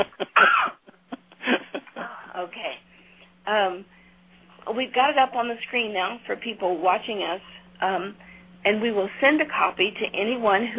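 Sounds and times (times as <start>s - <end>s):
speech: 0.0s - 0.5s, 3.5s - 4.0s, 4.7s - 10.7s
loud explosive sneeze: 0.4s - 0.8s.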